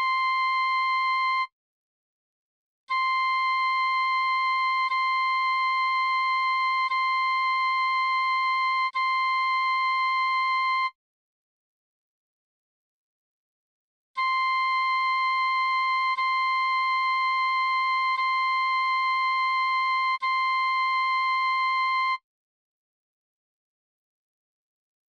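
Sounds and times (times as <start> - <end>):
C flute: 0.0 - 1.6, 2.9 - 11.0, 14.2 - 22.3.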